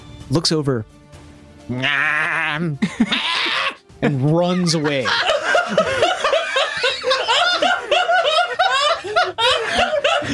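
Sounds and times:
speech: 0.3s - 1.0s, 1.7s - 6.0s
malformed woolly sheep bleating: 1.7s - 2.6s
laughter: 2.6s - 10.3s.

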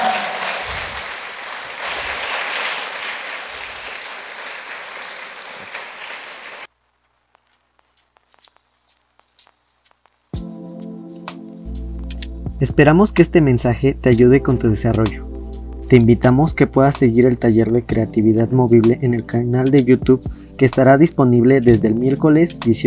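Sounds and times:
audience applause: 0.0s - 6.7s
sustained tonal musical sound: 10.4s - 22.8s
speech: 12.6s - 15.3s, 15.9s - 22.8s.

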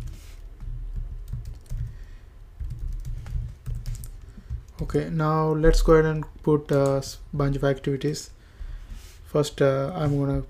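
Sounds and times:
typing on a computer keyboard while entering code: 0.0s - 4.8s, 6.7s - 7.0s
speech: 4.8s - 8.4s, 9.3s - 10.4s.

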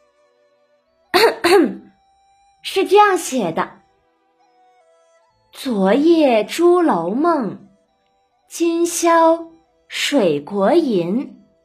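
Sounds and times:
throat clearing: 1.2s - 1.9s
speech: 1.5s - 1.8s, 2.6s - 3.8s, 5.6s - 7.6s, 8.5s - 11.4s.

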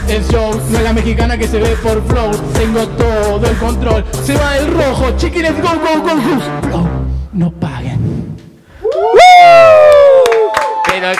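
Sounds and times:
speech: 0.1s - 8.0s
lively crowd whooping and applauding: 8.8s - 11.1s
loud drawn-out cheering shout: 8.9s - 11.1s.

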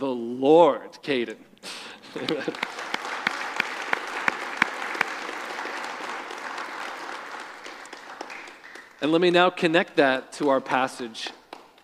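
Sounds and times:
speech: 0.0s - 2.8s, 9.0s - 11.4s
laughter: 1.8s - 3.3s
audience applause: 2.1s - 9.4s.

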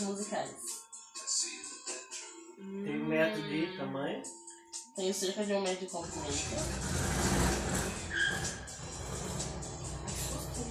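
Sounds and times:
speech: 0.0s - 1.6s, 2.6s - 4.4s, 5.0s - 7.2s
high-pitched squeal: 6.0s - 10.6s
Volkswagen Beetle engine running: 6.1s - 10.6s.

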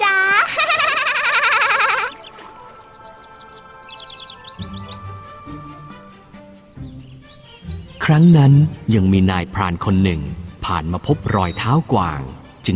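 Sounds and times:
laughter: 0.1s - 2.7s
small bird chirping: 1.5s - 8.8s
speech: 8.1s - 12.7s.

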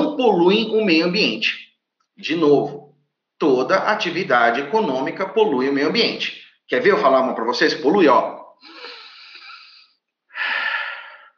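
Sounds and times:
speech: 0.2s - 8.8s
person breathing audibly: 8.6s - 11.3s.

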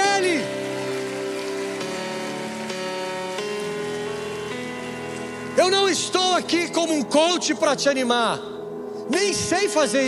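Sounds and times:
audience applauding: 0.0s - 6.8s
speech: 5.9s - 10.0s.

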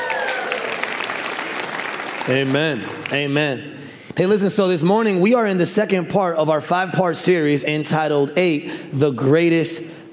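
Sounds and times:
faint tonal whoops: 0.0s - 1.0s
crowd applause: 0.0s - 3.3s
speech: 2.3s - 10.0s.

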